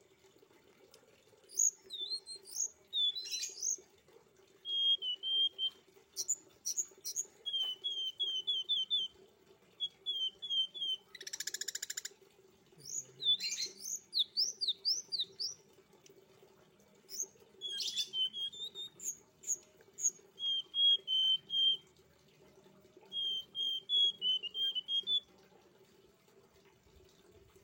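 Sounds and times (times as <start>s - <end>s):
streaked spiderhunter song of high scratchy chirps and rasping bursts: 1.5s - 3.8s, 4.7s - 9.2s, 9.8s - 12.1s, 12.8s - 15.6s, 17.1s - 21.8s, 23.1s - 25.2s.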